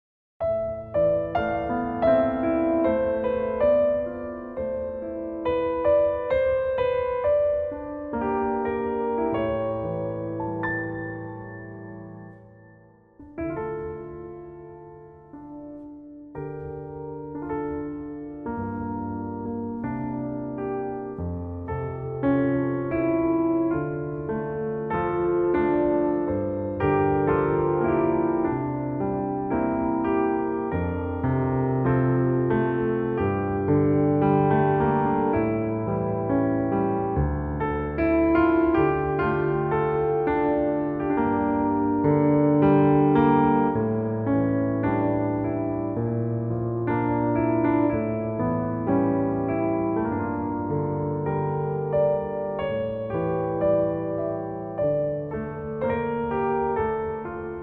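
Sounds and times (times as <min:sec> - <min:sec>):
solo piano: 0:00.4 - 0:57.6.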